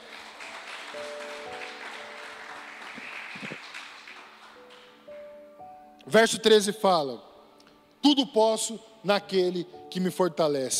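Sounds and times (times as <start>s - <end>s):
audience applause: 0.0s - 4.9s
speech: 6.1s - 7.3s, 8.0s - 10.7s.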